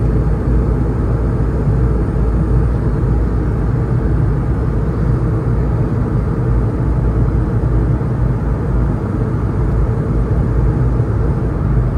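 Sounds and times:
Airbus A220 engines roaring in flight: 0.0s - 11.9s.

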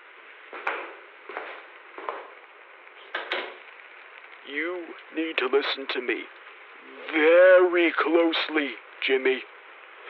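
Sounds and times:
door closing: 3.0s - 3.6s
speech: 4.5s - 6.4s, 7.1s - 9.5s.

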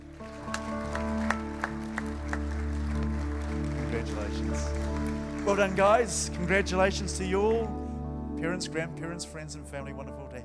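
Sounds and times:
church congregation applauding after a child is blessed: 0.0s - 7.7s
speech: 5.5s - 7.8s, 8.4s - 10.4s.

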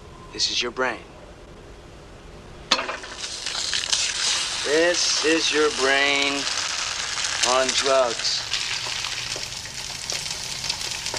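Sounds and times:
speech: 0.3s - 1.1s, 4.7s - 6.6s, 7.4s - 8.5s
eggs sizzling in a frying pan: 2.7s - 11.1s.

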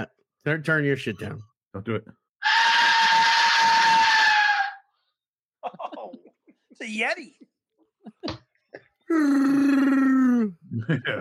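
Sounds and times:
speech: 0.0s - 2.2s, 6.8s - 8.4s, 9.1s - 11.1s
Aztec death whistle shrieking: 2.4s - 4.9s
laughter: 5.6s - 6.8s, 7.9s - 9.0s, 10.7s - 11.1s.

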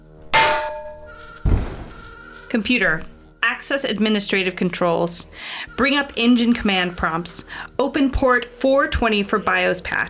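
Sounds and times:
frying pan hitting a head: 0.0s - 1.8s
speech: 2.5s - 10.0s.

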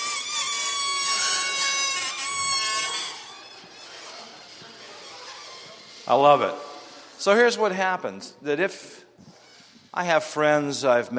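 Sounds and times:
air squealing out of a stretched balloon neck: 0.0s - 7.2s
speech: 6.1s - 6.6s, 7.2s - 9.1s, 9.9s - 11.1s.

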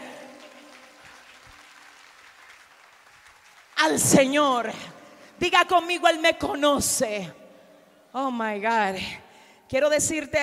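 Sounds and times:
applause: 0.0s - 4.9s
speech: 3.8s - 7.4s, 8.1s - 10.4s.

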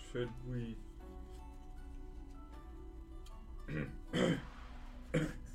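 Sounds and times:
speech: 0.1s - 0.9s
throat clearing: 3.7s - 4.5s, 5.1s - 5.5s.

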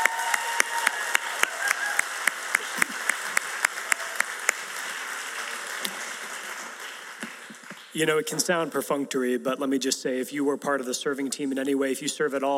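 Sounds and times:
audience applause: 0.0s - 8.4s
speech: 8.0s - 12.5s.

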